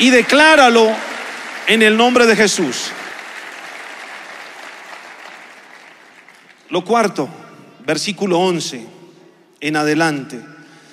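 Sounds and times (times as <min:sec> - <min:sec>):
speech: 0:00.0 - 0:03.0, 0:06.7 - 0:09.0, 0:09.6 - 0:10.5
audience applauding: 0:00.0 - 0:06.7.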